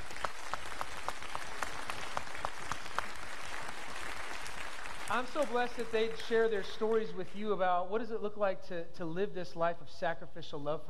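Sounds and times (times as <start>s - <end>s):
audience applause: 0.0s - 6.6s
speech: 5.2s - 10.8s.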